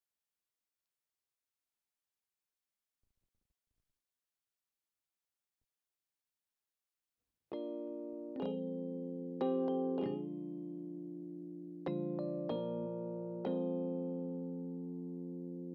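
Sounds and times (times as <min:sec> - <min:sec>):
Rhodes electric piano: 0:07.5 - 0:15.7.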